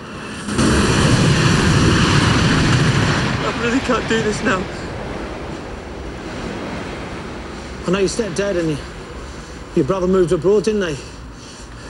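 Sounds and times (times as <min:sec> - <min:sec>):
train rushing past: 0:00.0 - 0:10.1
speech: 0:03.9 - 0:04.8, 0:07.9 - 0:08.9, 0:09.8 - 0:11.2.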